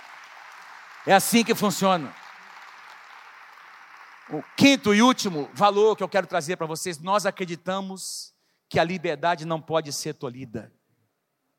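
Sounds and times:
audience applause: 0.0s - 6.4s
speech: 1.0s - 2.2s, 4.3s - 10.8s.

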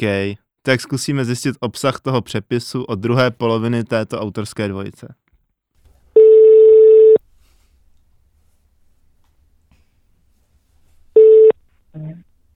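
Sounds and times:
speech: 0.0s - 5.2s
telephone ringing tone: 6.2s - 7.2s, 11.2s - 11.6s.

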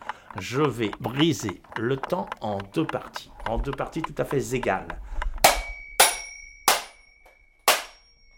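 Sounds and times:
small hammer smashing an alarm clock: 0.2s - 8.3s
speech: 0.4s - 5.2s
alarm clock bell ringing tone: 5.6s - 8.3s.

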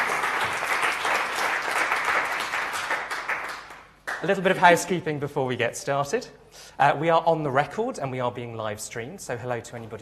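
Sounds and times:
crowd audience round of applause: 0.0s - 4.4s
speech: 4.2s - 10.0s.

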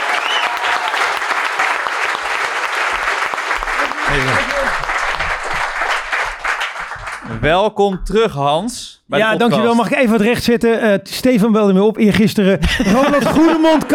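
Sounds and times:
loud audience applause: 0.0s - 7.4s
laughter: 3.6s - 5.6s, 12.6s - 13.9s
speech: 4.2s - 4.8s, 7.4s - 13.9s.

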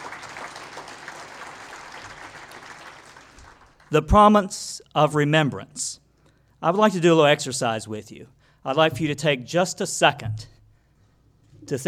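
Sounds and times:
audience applause: 0.0s - 3.9s
speech: 3.9s - 6.0s, 6.6s - 10.6s, 11.7s - 11.8s.

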